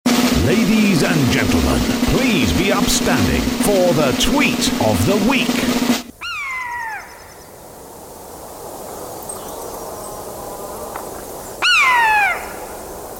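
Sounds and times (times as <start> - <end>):
Common Buzzard mewing calls: 0.3 - 7.4, 11.6 - 12.8
speech: 0.5 - 6.0.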